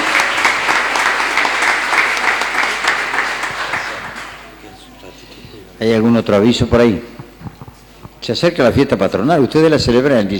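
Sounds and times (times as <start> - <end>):
audience applause: 0.0 - 4.8
speech: 5.8 - 7.2, 8.2 - 10.3.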